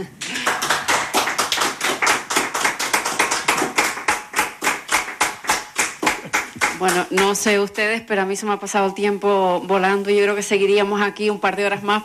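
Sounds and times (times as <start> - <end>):
speech: 0.0 - 0.2, 6.8 - 12.0
audience applause: 0.2 - 6.9.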